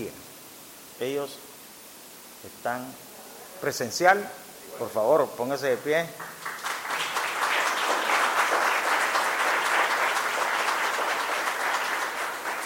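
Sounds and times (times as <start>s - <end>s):
speech: 1.0s - 1.5s, 2.4s - 6.5s
audience applause: 6.2s - 12.6s.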